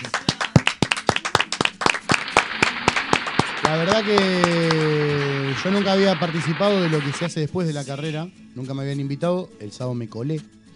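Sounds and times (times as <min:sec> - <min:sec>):
small crowd applause: 0:00.0 - 0:07.3
speech: 0:03.6 - 0:04.8, 0:05.6 - 0:10.6.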